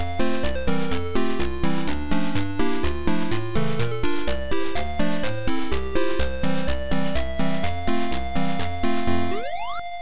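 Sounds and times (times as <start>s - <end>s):
game music: 0.1s - 10.0s.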